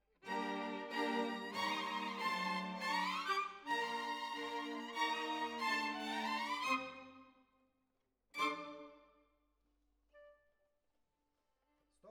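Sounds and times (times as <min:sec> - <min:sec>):
violins: 0:00.2 - 0:07.3, 0:08.4 - 0:09.1.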